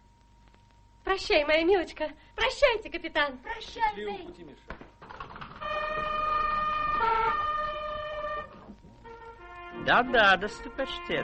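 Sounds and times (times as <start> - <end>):
speech: 1.1 - 4.8, 9.8 - 11.2
stagecoach post horn blowing: 5.6 - 11.2.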